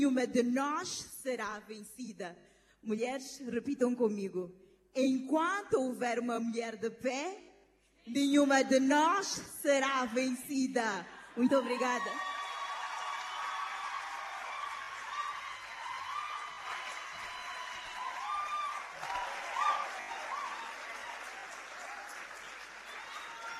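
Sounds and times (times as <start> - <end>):
speech: 0.0 - 12.3
audience applause: 11.6 - 23.5.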